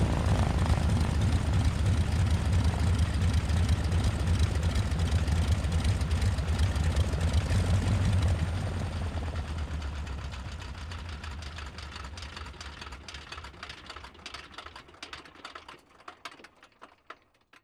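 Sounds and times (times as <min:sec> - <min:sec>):
aircraft engine starting: 0:00.0 - 0:12.0
aircraft engine shutting off: 0:00.0 - 0:13.7
aircraft engine idling: 0:00.0 - 0:15.6.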